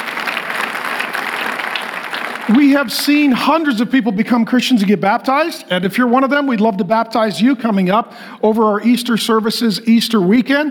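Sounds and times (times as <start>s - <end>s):
audience applause: 0.0s - 2.9s
speech: 2.5s - 10.6s.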